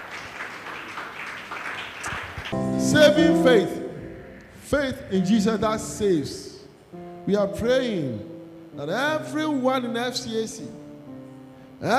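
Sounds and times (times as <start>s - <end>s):
audience clapping: 0.0s - 3.0s
speech: 2.8s - 3.8s, 4.7s - 6.5s, 7.3s - 10.8s.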